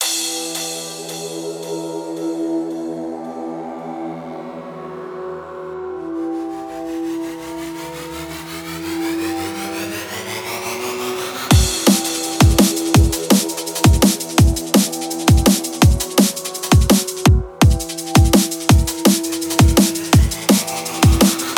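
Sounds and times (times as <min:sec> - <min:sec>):
heavy bass: 0:06.0 - 0:16.2, 0:16.8 - 0:21.5.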